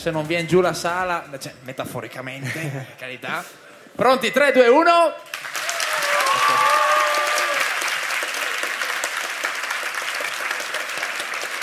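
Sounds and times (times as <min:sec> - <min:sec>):
speech: 0:00.0 - 0:05.4
audience applause for the students of liceo Quadri: 0:05.3 - 0:11.6.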